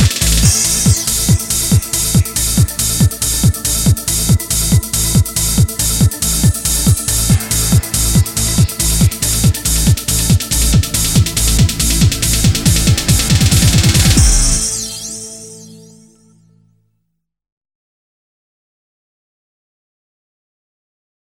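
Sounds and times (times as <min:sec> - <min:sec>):
techno remix: 0:00.0 - 0:16.3.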